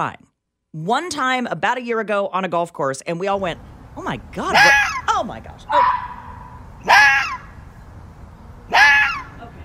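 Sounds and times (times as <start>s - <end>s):
speech: 0.0s - 5.9s
fox harsh rasping screech-barks: 4.5s - 5.1s, 5.7s - 7.6s, 8.7s - 9.4s.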